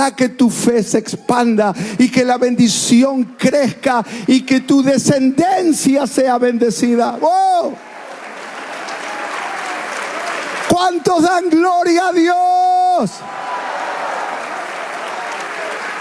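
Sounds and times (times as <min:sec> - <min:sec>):
speech: 0:00.0 - 0:07.9, 0:10.8 - 0:13.4
audience applause: 0:07.5 - 0:11.9, 0:12.7 - 0:15.9.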